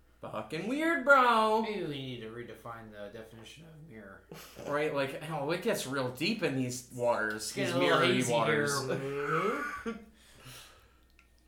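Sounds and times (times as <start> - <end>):
speech: 0.2 - 10.1
person yawning: 8.9 - 9.9.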